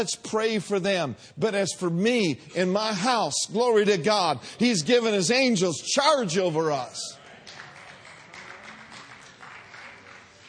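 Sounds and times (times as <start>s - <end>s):
speech: 0.0s - 7.2s
audience clapping: 7.1s - 10.4s.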